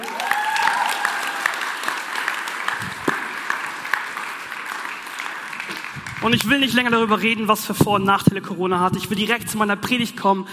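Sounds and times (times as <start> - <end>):
audience clapping: 0.0 - 7.6
speech: 6.2 - 10.5.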